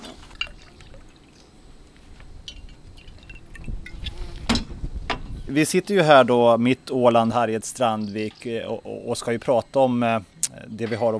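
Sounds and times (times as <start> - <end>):
drink pouring to refill a cup: 0.0 - 4.5
speech: 5.5 - 11.1.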